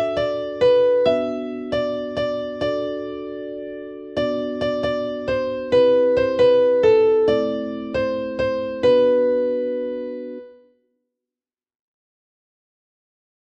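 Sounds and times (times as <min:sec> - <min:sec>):
keyboard: 0:00.0 - 0:10.7.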